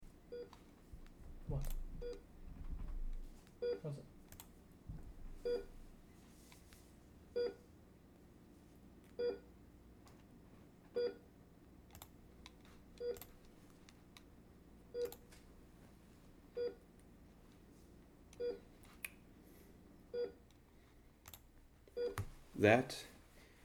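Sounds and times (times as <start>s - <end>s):
faint room hum: 0.0s - 23.6s
heart monitor beeping: 0.3s - 3.9s, 4.9s - 5.8s, 7.4s - 7.6s, 9.2s - 9.4s, 11.0s - 11.2s, 13.0s - 13.3s, 14.9s - 15.2s, 16.6s - 16.8s, 18.4s - 18.7s, 20.1s - 20.4s, 22.0s - 22.4s
speech: 1.5s - 1.8s, 3.8s - 4.1s, 22.6s - 23.1s.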